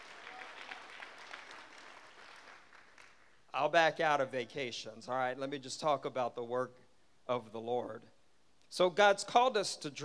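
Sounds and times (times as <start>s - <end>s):
audience clapping hands: 0.0s - 3.5s
speech: 3.6s - 8.1s, 8.7s - 10.0s.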